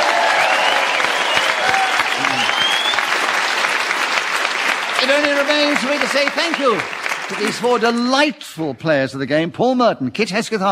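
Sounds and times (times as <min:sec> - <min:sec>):
faint cheers and whistles: 0:00.0 - 0:03.3
audience applause for the winner: 0:00.0 - 0:08.2
speech: 0:05.1 - 0:10.6.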